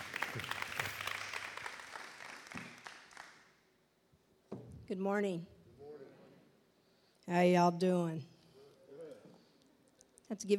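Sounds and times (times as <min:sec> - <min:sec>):
audience applause welcoming a speaker at a morning gathering: 0:00.0 - 0:03.5
speech: 0:00.4 - 0:00.6, 0:04.9 - 0:05.6, 0:07.3 - 0:08.3, 0:10.3 - 0:10.5.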